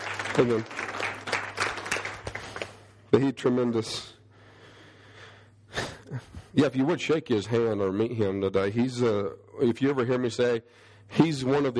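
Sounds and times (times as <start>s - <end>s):
crowd clapping: 0.0s - 3.0s
speech: 0.4s - 0.9s, 3.1s - 4.1s, 6.1s - 11.7s.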